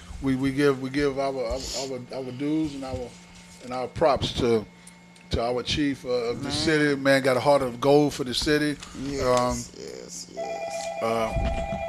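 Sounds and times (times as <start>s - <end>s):
speech: 0.2s - 11.7s
telephone ringing for an incoming call-in caller: 10.4s - 11.8s.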